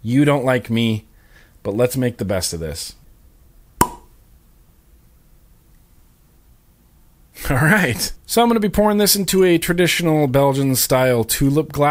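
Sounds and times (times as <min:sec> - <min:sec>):
speech: 0:00.0 - 0:03.0, 0:07.4 - 0:11.8
cork popping out of a beer bottle: 0:03.8 - 0:04.2.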